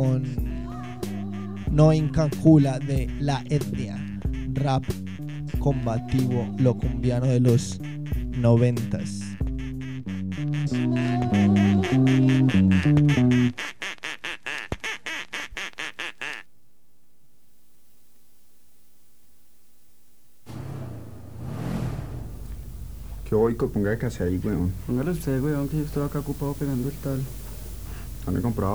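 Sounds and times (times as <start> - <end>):
duck quacking: 0.0 - 16.5, 20.5 - 28.7
speech: 1.8 - 9.5, 10.4 - 13.0, 23.5 - 27.4, 28.2 - 28.7
rough hissy noise: 17.4 - 28.7.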